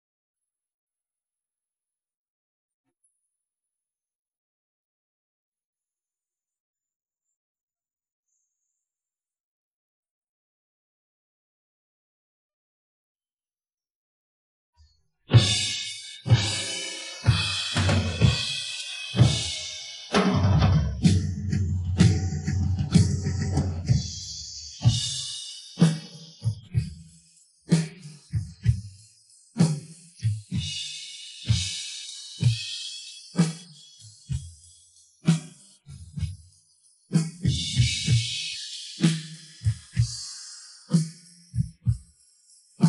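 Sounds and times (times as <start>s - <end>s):
drums: 15.3s - 36.5s, 37.1s - 42.8s.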